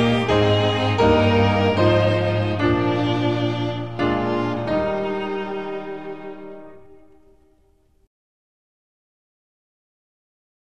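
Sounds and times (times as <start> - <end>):
instrumental music: 0.0 - 8.0.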